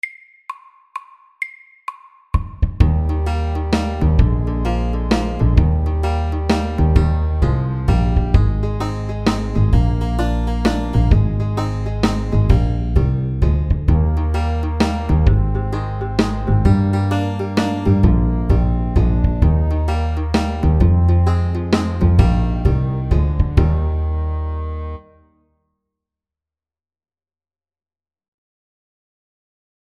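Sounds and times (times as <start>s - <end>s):
fast country shuffle at 130 BPM: 2.8s - 24.0s.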